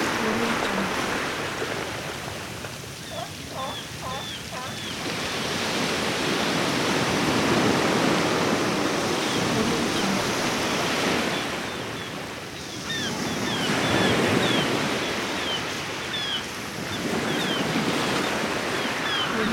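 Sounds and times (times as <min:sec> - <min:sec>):
sea waves: 0:00.0 - 0:19.5
seagulls calling: 0:00.1 - 0:01.6, 0:02.6 - 0:05.6, 0:09.2 - 0:19.5.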